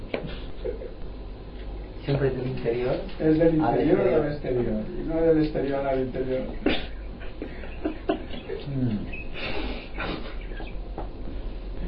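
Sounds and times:
speech: 2.1s - 6.8s, 8.7s - 9.6s
laughter: 6.4s - 10.8s
bird chirping in the room: 8.2s - 9.6s, 10.2s - 11.0s.

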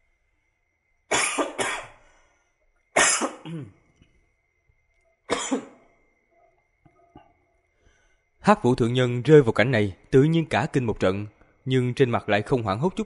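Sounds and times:
person coughing in harsh raspy fits: 1.1s - 2.0s, 3.0s - 3.8s, 5.3s - 5.9s
speech: 3.5s - 3.8s, 8.5s - 13.0s.

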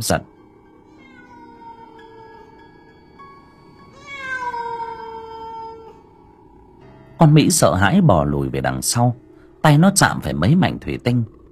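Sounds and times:
speech: 0.0s - 0.4s, 7.2s - 11.4s
cat yowling angrily: 0.8s - 2.6s, 3.9s - 6.2s.

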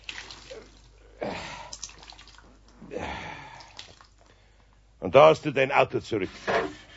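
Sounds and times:
water splashing from a squeezed soaked cloth: 0.0s - 2.7s, 3.4s - 4.2s
wet cloth rag being wrung out: 0.0s - 2.8s, 3.4s - 4.3s
water dripping: 0.0s - 4.4s
speech: 5.1s - 6.7s.

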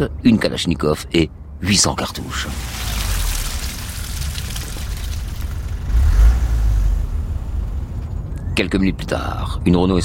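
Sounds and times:
speech: 0.0s - 3.1s, 8.6s - 10.0s
car engine revving as car drives away from red-brick house: 2.5s - 8.3s.

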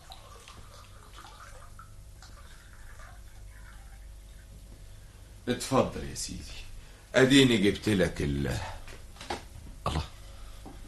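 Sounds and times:
water from a desert spring pouring and splashing: 0.0s - 3.2s
speech: 5.5s - 8.8s.

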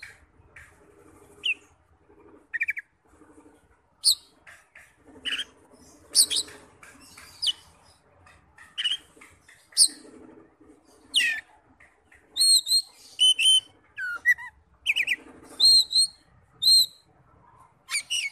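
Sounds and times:
Oriental magpie-robin song: 4.0s - 4.3s, 5.2s - 7.7s, 8.8s - 10.0s, 11.0s - 11.5s, 12.3s - 17.1s, 17.8s - 18.3s.

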